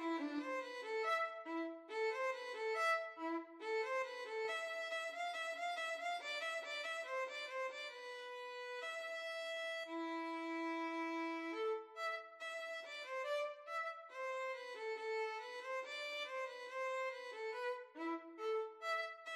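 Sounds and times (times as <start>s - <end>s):
violin and viola duet playing a gavotte: 0.0s - 19.3s.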